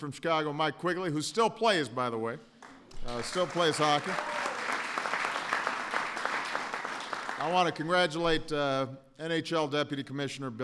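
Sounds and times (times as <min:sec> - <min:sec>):
speech: 0:00.0 - 0:04.4, 0:07.4 - 0:10.6
audience applause at a Chicago Blackhawks celebration: 0:02.6 - 0:07.6.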